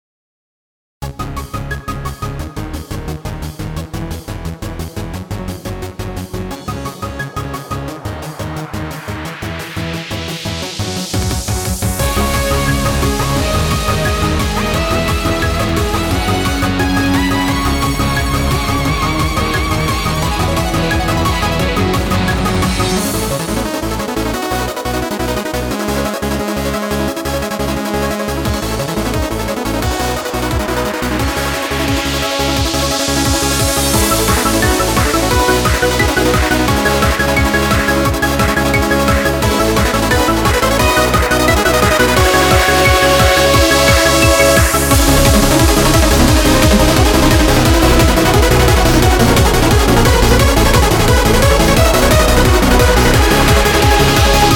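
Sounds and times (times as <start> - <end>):
trance music: 1.0 - 54.5.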